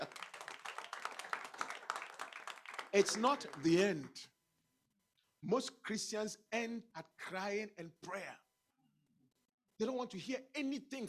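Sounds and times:
people clapping for the Lord Jesus: 0:00.0 - 0:04.2
speech: 0:02.9 - 0:04.3, 0:05.4 - 0:08.4, 0:09.8 - 0:11.0.

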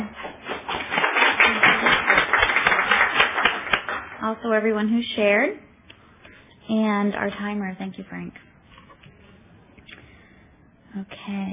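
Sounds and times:
audience applause for the speakers: 0:00.4 - 0:04.2
speech: 0:04.3 - 0:05.7, 0:06.7 - 0:08.5, 0:10.9 - 0:11.5.

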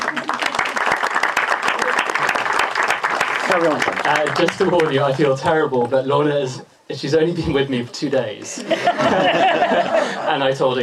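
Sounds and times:
audience applause: 0:00.0 - 0:05.4
speech: 0:03.5 - 0:10.8
laughter: 0:07.8 - 0:10.5.

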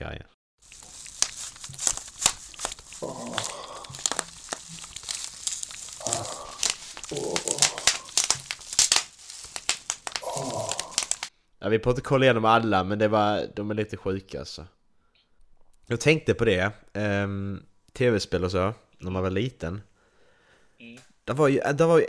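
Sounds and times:
bubble wrap being handled and popped: 0:00.6 - 0:11.3
speech: 0:11.7 - 0:14.8, 0:15.9 - 0:19.9, 0:20.8 - 0:22.0.

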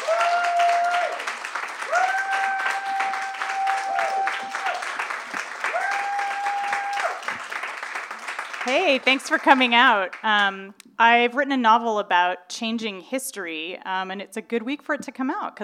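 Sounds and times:
audience applause welcoming a novelist: 0:00.0 - 0:10.3
speech: 0:08.7 - 0:15.6.

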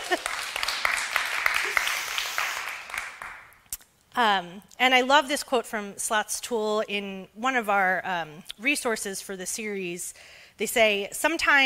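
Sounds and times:
crowd applause: 0:00.0 - 0:03.5
speech: 0:00.1 - 0:00.4, 0:04.2 - 0:11.6.

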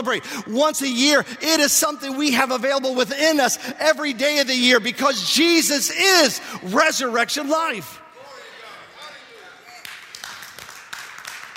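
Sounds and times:
speech: 0:00.0 - 0:08.0
weak half-hearted audience clapping: 0:09.7 - 0:11.5.

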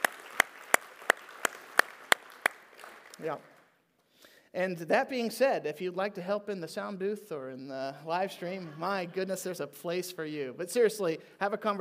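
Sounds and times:
audience applause: 0:00.0 - 0:03.7
speech: 0:03.2 - 0:03.6, 0:04.5 - 0:11.7.

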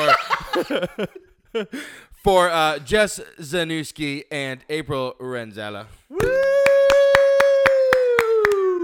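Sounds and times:
laughter: 0:00.0 - 0:01.7
speech: 0:00.2 - 0:07.2
person whooping: 0:06.1 - 0:08.8
clapping welcoming two guests at a horse-themed show: 0:06.2 - 0:08.8.

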